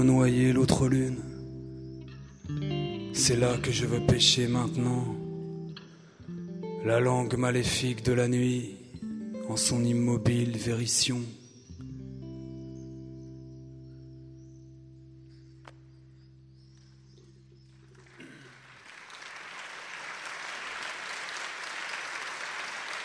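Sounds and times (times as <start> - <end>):
speech: 0.0 - 1.3, 2.5 - 5.2, 6.8 - 8.8, 9.5 - 11.4
sustained applause: 17.7 - 23.0.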